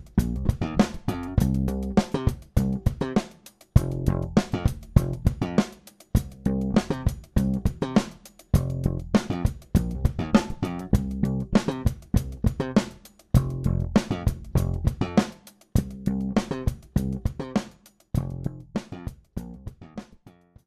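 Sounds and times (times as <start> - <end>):
slap bass grooves: 0.0 - 20.6.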